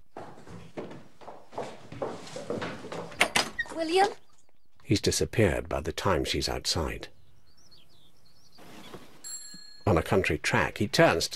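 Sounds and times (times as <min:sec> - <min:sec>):
woman's running footsteps outside: 0:00.0 - 0:03.9
speech: 0:03.8 - 0:04.2, 0:04.9 - 0:07.2, 0:09.9 - 0:11.3.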